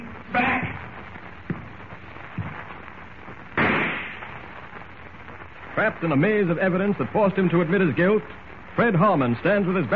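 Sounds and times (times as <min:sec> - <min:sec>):
rifle shot: 0:03.6 - 0:04.3
speech: 0:05.8 - 0:09.9.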